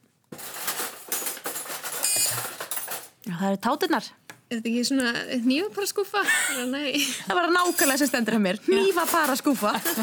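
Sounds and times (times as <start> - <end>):
metal cutlery clattering as someone rummages through a drawer: 0.3 - 3.2, 7.6 - 10.0
speech: 3.3 - 10.0
laughter: 9.6 - 10.0.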